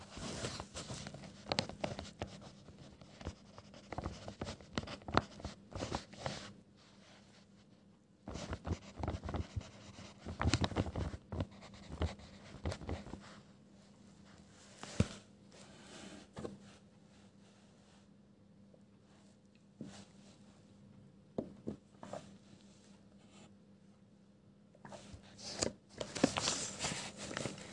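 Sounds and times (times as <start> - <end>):
faint steady low hum: 0.0 - 27.7
pencil scribbling on paper: 1.8 - 6.0, 8.3 - 10.5, 11.4 - 13.1.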